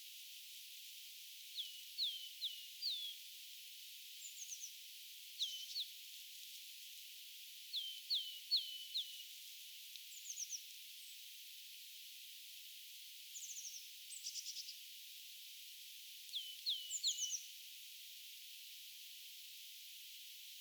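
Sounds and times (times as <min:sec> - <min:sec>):
small birds on an island: 0:01.4 - 0:11.4, 0:13.1 - 0:15.0, 0:16.1 - 0:17.7.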